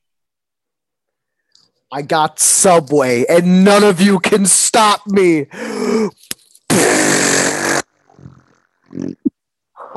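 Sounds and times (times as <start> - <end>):
speech: 1.9 - 6.3
wet fart: 6.7 - 9.3.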